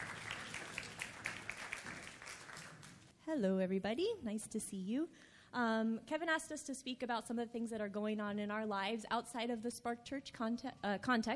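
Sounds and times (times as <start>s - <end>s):
audience applause: 0.0s - 3.0s
speech: 3.3s - 11.3s.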